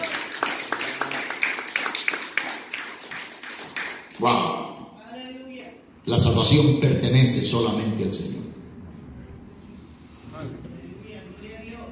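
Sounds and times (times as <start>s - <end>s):
audience applause: 0.0s - 4.1s
speech: 4.2s - 4.6s, 6.1s - 8.5s.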